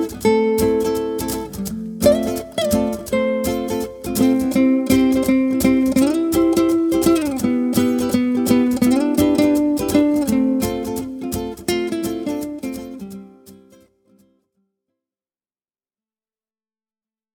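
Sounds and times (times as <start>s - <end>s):
percussion: 0.0s - 13.9s.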